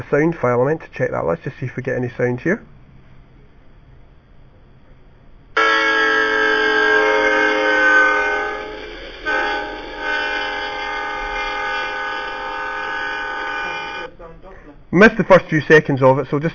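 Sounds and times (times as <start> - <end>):
speech: 0.0 - 2.8, 15.0 - 16.5
passing train horn with Doppler effect: 5.6 - 14.1.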